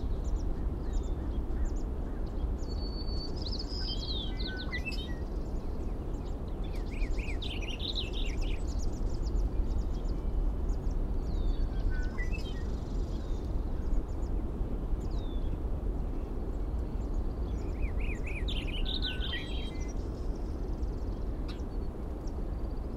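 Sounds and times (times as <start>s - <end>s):
birds singing: 0.0s - 22.9s.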